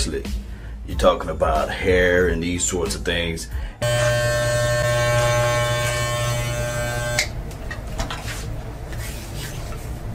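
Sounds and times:
speech: 0.0 - 4.1
electric clippers buzzing trimming a man's beard: 3.8 - 7.7.

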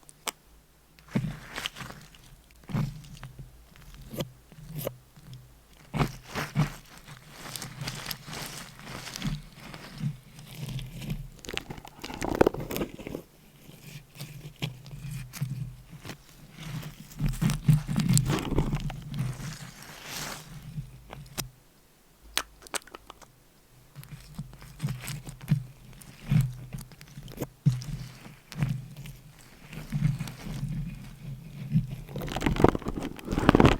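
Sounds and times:
scratching with nails: 1.0 - 21.5, 23.9 - 33.7.

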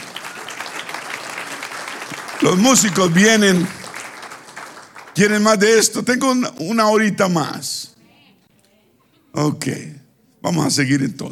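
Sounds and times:
audience applause: 0.0 - 5.8
speech: 2.4 - 3.8, 5.2 - 7.8, 9.4 - 11.2.

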